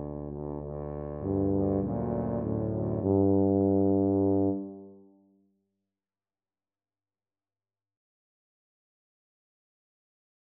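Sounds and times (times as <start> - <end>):
tuba trio playing: 0.0 - 4.9.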